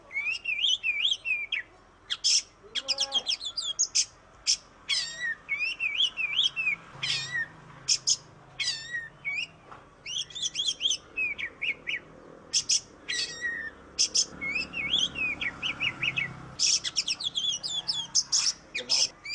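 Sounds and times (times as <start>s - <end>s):
Oriental magpie-robin singing whistles and chirps: 0.1s - 19.3s.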